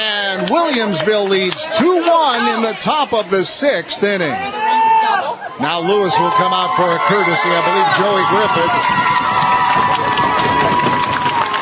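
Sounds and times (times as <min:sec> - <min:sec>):
teammates and fans at a softball game clapping and cheering: 0:00.0 - 0:03.4, 0:06.2 - 0:11.6
speech: 0:00.4 - 0:09.4.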